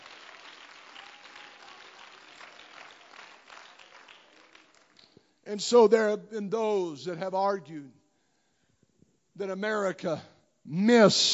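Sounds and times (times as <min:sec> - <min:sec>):
audience clapping hands: 0:00.0 - 0:05.2
speech: 0:05.5 - 0:08.0, 0:09.4 - 0:11.3.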